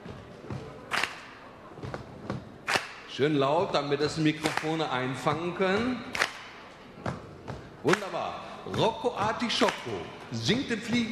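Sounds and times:
audience stomping twice and clapping once: 0.0s - 3.2s, 4.0s - 11.1s
speech: 3.2s - 6.2s, 7.8s - 11.1s.

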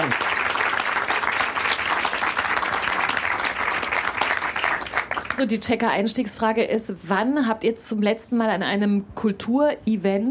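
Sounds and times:
audience applause: 0.0s - 5.4s
speech: 5.4s - 10.2s.

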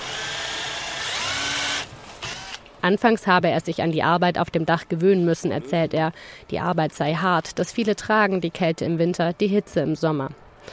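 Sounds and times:
cordless drill-driver whirring while removing old roof panels: 0.0s - 2.7s
speech: 2.8s - 10.7s.

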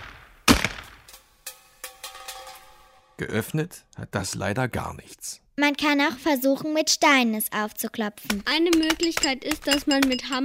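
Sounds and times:
rifle shot at a tin can: 0.0s - 1.2s
speech: 3.2s - 10.4s.

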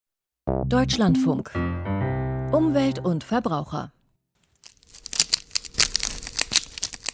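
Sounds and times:
speech: 0.7s - 1.9s, 2.5s - 4.0s
crinkling cellophane: 4.4s - 7.1s.

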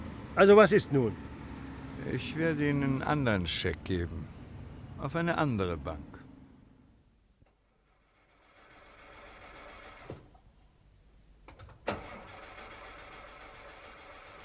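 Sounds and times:
speech: 0.4s - 1.3s, 2.0s - 4.4s, 5.0s - 6.1s
car engine cranking but failing to start: 8.4s - 10.4s, 11.5s - 14.4s.

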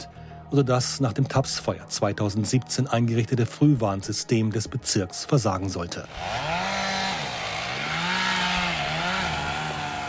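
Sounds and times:
speech: 0.5s - 6.8s
chainsaw felling trees: 6.1s - 10.0s.

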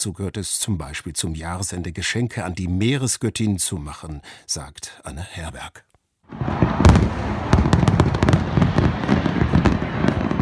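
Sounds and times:
speech: 0.0s - 8.2s
fireworks exploding over Atlantic bay off Rio de Janeiro: 6.3s - 10.4s.

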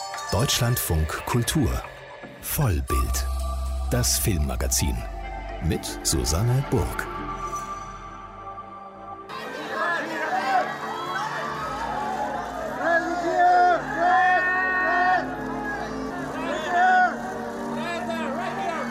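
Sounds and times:
speech: 0.3s - 3.3s, 3.9s - 7.1s
cheering crowd at red carpet: 9.3s - 18.9s.

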